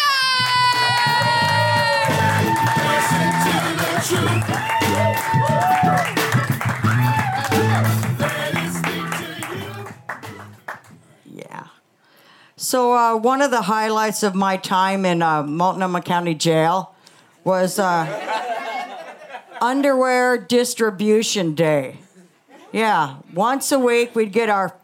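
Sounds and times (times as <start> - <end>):
audience cheering and whooping: 0.0 - 10.0
audience applause: 0.5 - 10.9
speech: 12.7 - 18.3, 19.6 - 22.0, 22.7 - 24.8.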